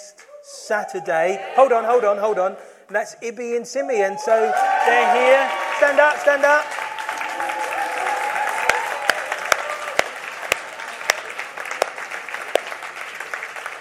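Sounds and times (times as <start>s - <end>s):
speech: 0.7s - 6.8s
audience applause: 4.3s - 13.7s.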